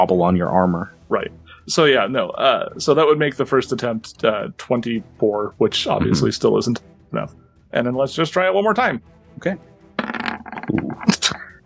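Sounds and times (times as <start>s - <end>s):
speech: 0.0s - 10.1s, 10.7s - 11.4s
dice being rolled: 10.0s - 10.5s.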